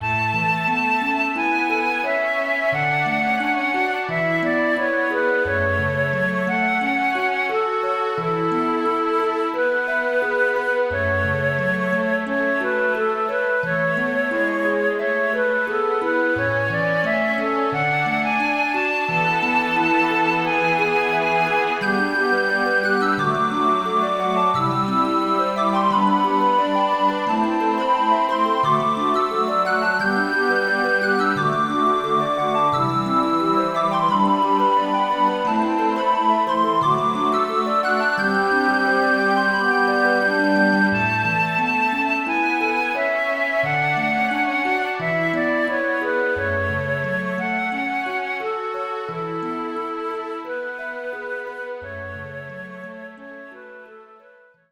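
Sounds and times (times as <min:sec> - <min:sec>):
ocarina melody: 0:00.0 - 0:54.4.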